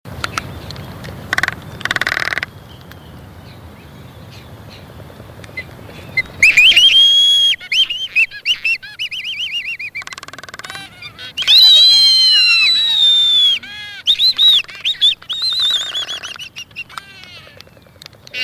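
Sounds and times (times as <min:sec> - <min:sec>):
albatross giving harsh braying calls: 0:01.3 - 0:02.5, 0:05.6 - 0:18.4.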